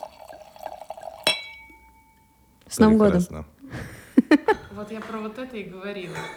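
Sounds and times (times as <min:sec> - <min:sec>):
wine pouring into a glass: 0:00.0 - 0:02.0
glass clinking: 0:00.0 - 0:03.1, 0:04.3 - 0:06.3
speech: 0:02.7 - 0:03.8, 0:04.8 - 0:06.3
laughter: 0:03.7 - 0:05.1.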